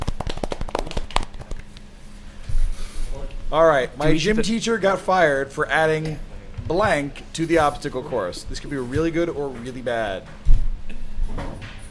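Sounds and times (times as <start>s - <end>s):
golf claps: 0.0s - 1.6s
speech: 3.5s - 10.4s.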